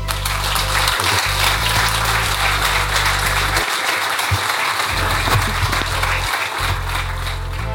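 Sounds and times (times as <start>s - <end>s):
audience applause: 0.0s - 7.7s
laughter: 0.1s - 7.7s.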